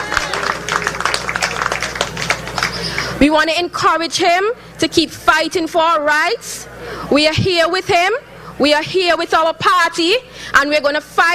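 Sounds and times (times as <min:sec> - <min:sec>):
round of applause: 0:00.0 - 0:03.2
speech: 0:03.2 - 0:11.3.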